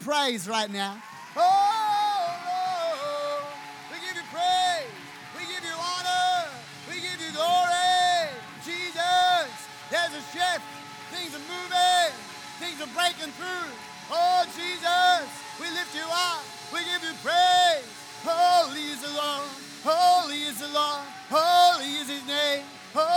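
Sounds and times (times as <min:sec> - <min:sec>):
audience clapping: 0:00.0 - 0:23.1
speech: 0:00.1 - 0:01.8, 0:12.1 - 0:23.1.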